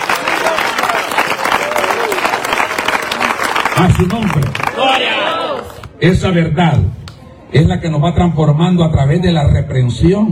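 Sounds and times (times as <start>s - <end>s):
loud audience applause: 0.0s - 5.9s
speech: 3.8s - 10.3s.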